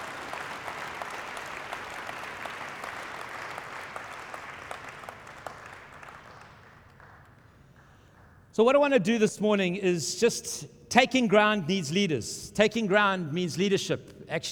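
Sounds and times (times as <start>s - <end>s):
audience applause: 0.0s - 8.3s
speech: 8.6s - 14.5s.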